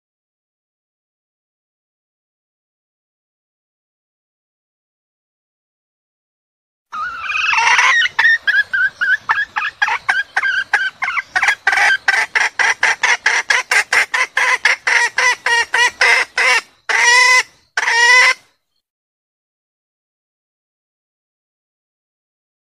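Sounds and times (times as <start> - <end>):
junglefowl hen squawking: 6.9 - 18.4.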